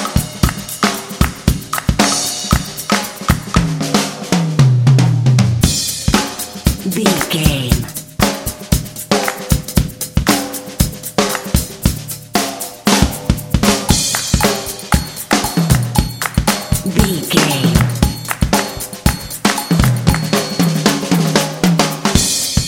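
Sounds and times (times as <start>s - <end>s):
claps: 0.0s - 3.5s, 9.2s - 10.6s, 11.2s - 11.8s, 13.9s - 20.6s
hip funky drums: 0.0s - 22.6s
percussion: 0.0s - 22.6s.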